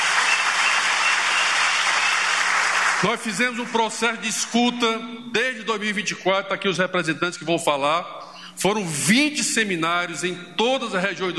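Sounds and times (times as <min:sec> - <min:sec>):
applause: 0:00.0 - 0:03.8
speech: 0:03.0 - 0:11.3.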